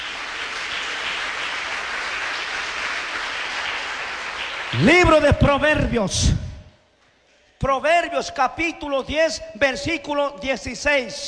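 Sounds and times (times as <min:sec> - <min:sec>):
audience applause: 0:00.0 - 0:05.2
speech: 0:04.7 - 0:06.4, 0:07.6 - 0:11.2.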